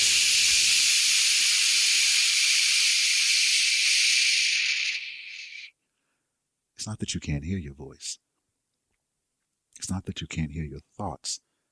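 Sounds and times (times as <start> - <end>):
white noise hiss: 0.0 - 5.7
speech: 6.8 - 8.3, 9.9 - 11.5.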